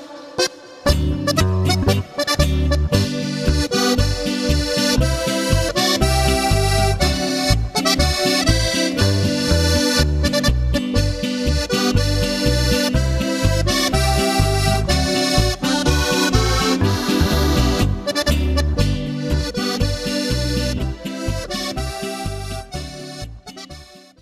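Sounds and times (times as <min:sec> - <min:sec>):
march music: 0:00.2 - 0:23.8.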